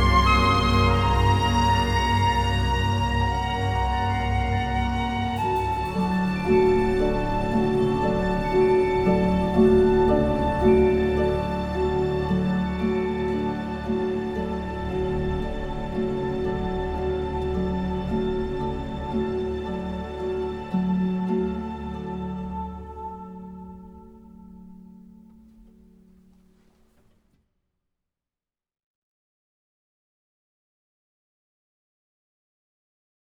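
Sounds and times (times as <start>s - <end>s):
fantasy in-game orchestral music: 0.0s - 24.5s.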